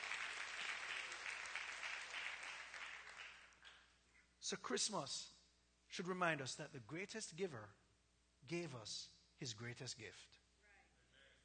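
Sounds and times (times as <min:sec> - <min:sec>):
audience clapping hands: 0:00.0 - 0:03.9
speech: 0:04.4 - 0:07.8, 0:08.4 - 0:10.4.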